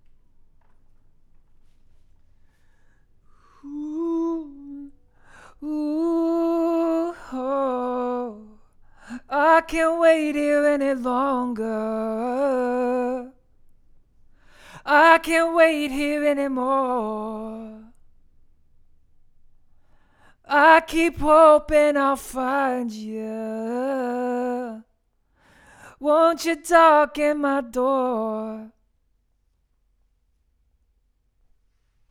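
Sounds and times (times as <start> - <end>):
vocals: 2.3 - 18.3, 19.8 - 28.9.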